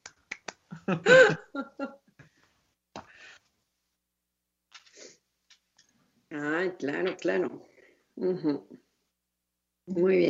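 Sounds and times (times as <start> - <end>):
hand clapping: 0.0 - 0.8
speech: 0.9 - 1.9, 6.8 - 8.8, 9.9 - 10.2.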